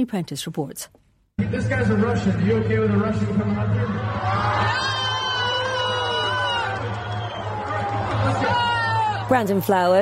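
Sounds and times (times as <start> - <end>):
speech: 0.0 - 4.8, 9.3 - 10.0
concert crowd booing: 3.5 - 9.6.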